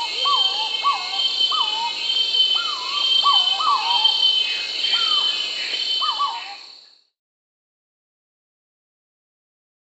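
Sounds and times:
Purple-throated Fruitcrow Querula purpurata in Peru: 0.0 - 7.0.

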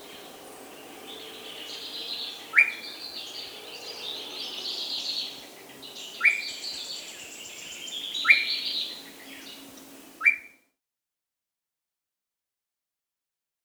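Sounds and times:
short-tailed antthrush singing soft rising hoots in South America: 0.0 - 10.5.

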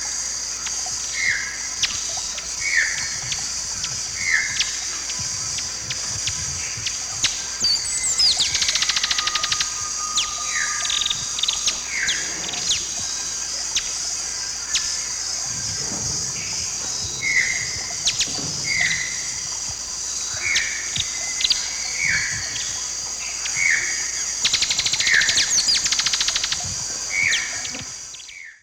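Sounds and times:
Topaza pyra feeding calls in the Eastern Lowlands of South America: 0.6 - 28.2.

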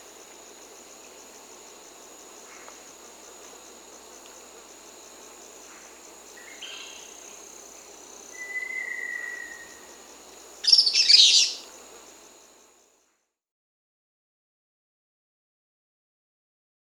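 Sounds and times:
Sulphury Flycatcher Tyrannopsis sulphurea calling in Peru: 6.4 - 7.2, 8.3 - 11.8.

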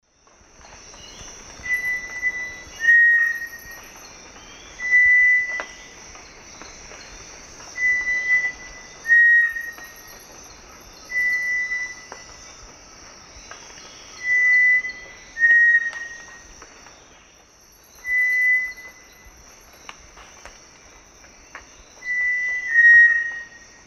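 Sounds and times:
Cinereous tinamou Crypturellus cinereus duet of clear steady whistles: 1.6 - 3.8, 4.7 - 5.8, 7.8 - 10.1, 11.1 - 12.1, 14.2 - 16.4, 18.0 - 19.0, 22.0 - 23.6.

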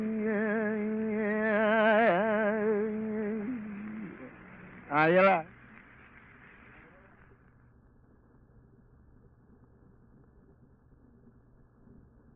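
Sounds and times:
Hawaiian name chant for chiefs: 0.0 - 5.5.

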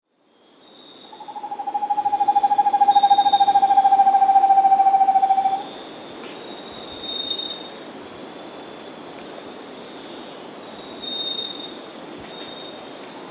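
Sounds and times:
Vermiculated screech owl trilling in South America: 1.2 - 5.7.

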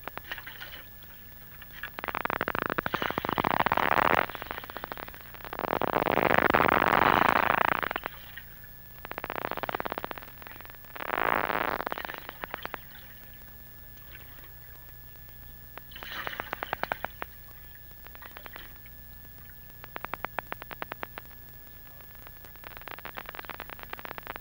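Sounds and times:
humpback whale song units with pulsed grating bursts and buzzy click trains: 0.2 - 20.2.

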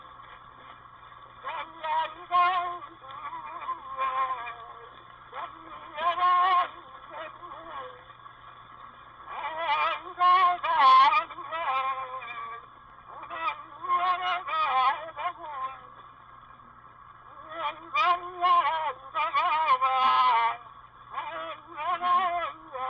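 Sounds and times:
Hawaiian name chant: 1.4 - 8.0, 9.3 - 15.9, 17.4 - 20.6, 21.2 - 22.8.

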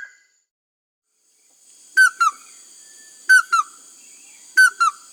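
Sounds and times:
Chestnut-headed crake Anurolimnas castaneiceps giving whistled chattering notes in the Amazon, Peru: 2.0 - 2.4, 3.3 - 3.7, 4.6 - 5.0.

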